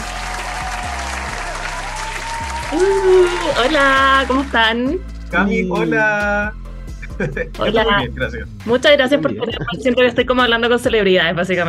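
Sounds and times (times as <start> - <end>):
audience applause: 0.0 - 4.7
laughter: 0.1 - 4.5, 7.0 - 8.0, 9.1 - 10.2
speech: 2.7 - 6.6, 7.2 - 11.6.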